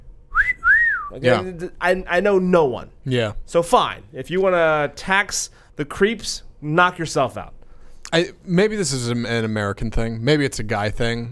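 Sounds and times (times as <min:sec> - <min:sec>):
two-part catcall wolf whistle: 0:00.3 - 0:01.2
speech: 0:01.1 - 0:11.3.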